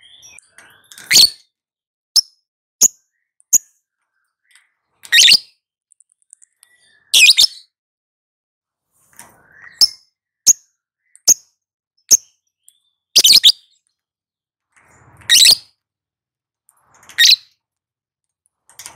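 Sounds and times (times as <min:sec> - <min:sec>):
lovebird chirping, trilling and ticking: 0:00.0 - 0:01.6, 0:02.2 - 0:07.8, 0:09.4 - 0:14.0, 0:15.2 - 0:15.7, 0:17.1 - 0:17.6.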